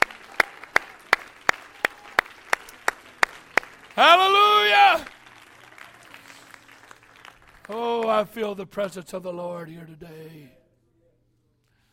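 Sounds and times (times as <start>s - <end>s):
audience clapping: 0.0s - 8.6s
speech: 4.0s - 5.1s, 7.7s - 10.6s.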